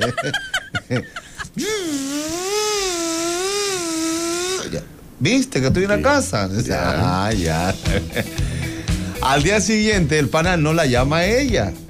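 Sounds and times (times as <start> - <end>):
laughter: 0.0 - 1.9, 6.9 - 8.6
speech: 0.0 - 2.4, 5.2 - 8.5, 9.2 - 11.8
voice imitating an electric blender motor: 1.6 - 4.9.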